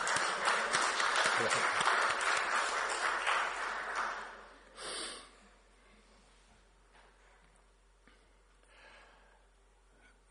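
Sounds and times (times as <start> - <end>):
audience applause: 0.0 - 4.6.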